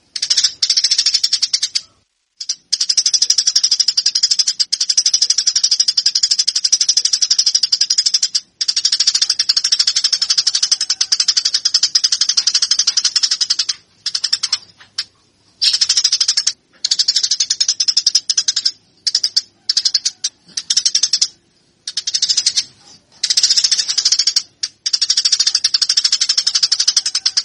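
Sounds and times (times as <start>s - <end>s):
caged Eurasian tree sparrow fighting call of buzzy rapid chirps: 0.0s - 27.4s.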